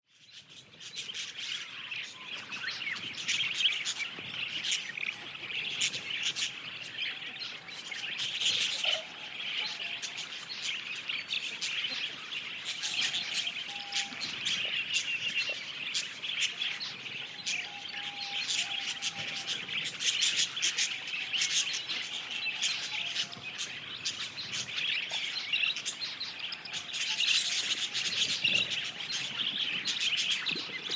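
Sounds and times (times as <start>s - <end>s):
budgerigars chattering: 0.9s - 30.9s.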